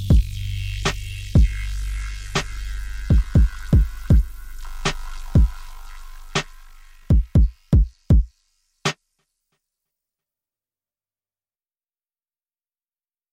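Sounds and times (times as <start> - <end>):
Wavestation synthesizer: 0.0 - 7.8.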